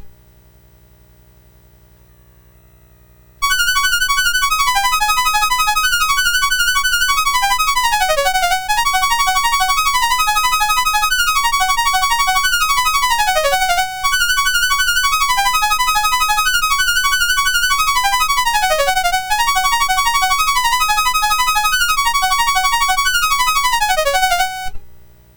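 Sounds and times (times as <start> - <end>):
piano on MOS6581R4 sound chip: 3.5 - 24.9.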